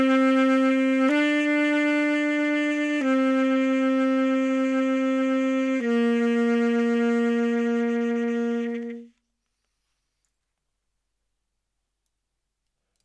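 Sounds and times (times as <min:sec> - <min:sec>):
saxophone: 0:00.0 - 0:09.2.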